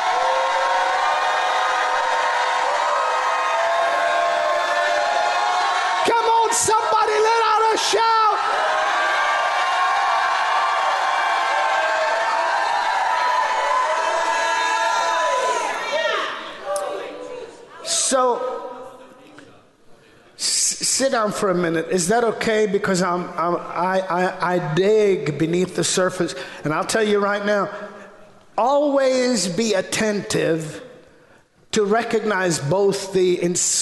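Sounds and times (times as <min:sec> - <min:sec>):
audience shouting and cheering: 0:00.0 - 0:18.4
speech: 0:06.5 - 0:08.2, 0:21.1 - 0:28.0, 0:28.6 - 0:30.8, 0:31.7 - 0:33.8.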